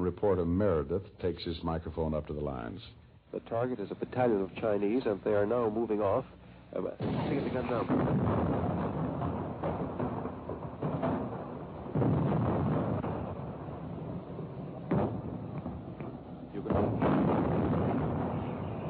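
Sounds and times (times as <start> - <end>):
speech: 0.1 - 8.9
artillery shells falling and exploding in dull crumps: 6.9 - 18.8.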